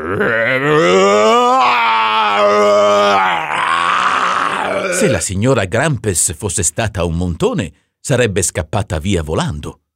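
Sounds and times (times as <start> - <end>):
person imitating a monster's roar: 0.0 - 5.2
speech: 0.1 - 1.2, 5.0 - 9.8.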